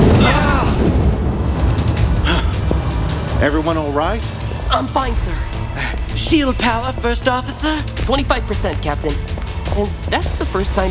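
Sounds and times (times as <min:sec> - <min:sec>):
enemy blast hitting a starship, sound effect: 0:00.0 - 0:03.5
speech: 0:03.4 - 0:10.8.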